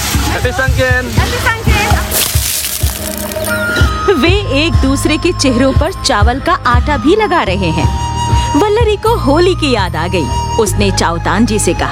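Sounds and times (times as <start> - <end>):
water thrown from buckets, splashing: 0.0 - 3.8
speech: 0.4 - 2.2, 3.0 - 11.9.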